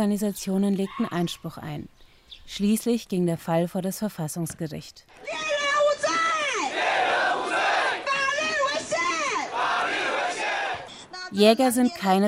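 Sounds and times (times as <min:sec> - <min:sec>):
speech: 0:00.0 - 0:05.5, 0:11.3 - 0:12.2
protesters chanting a slogan: 0:05.2 - 0:11.1.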